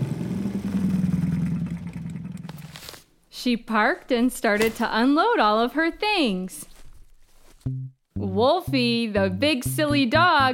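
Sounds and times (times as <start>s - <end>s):
small motor scooter engine revving: 0.0s - 2.9s
speech: 3.4s - 6.7s, 8.4s - 10.5s.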